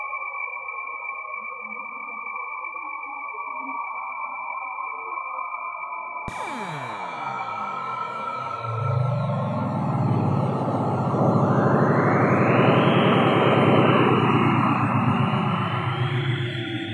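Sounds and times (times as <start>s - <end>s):
soundscape: 6.3s - 16.9s.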